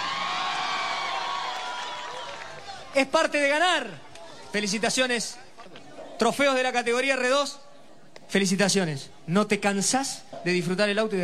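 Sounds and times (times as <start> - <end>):
crowd cheering and whooping at a car rally awards ceremony: 0.0 - 3.0
speech: 3.0 - 7.6, 8.3 - 11.2.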